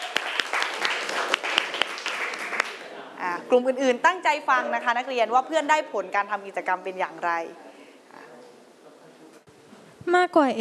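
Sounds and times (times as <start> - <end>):
students clapping for classmates: 0.0 - 2.9
speech: 3.5 - 7.7, 10.0 - 10.5.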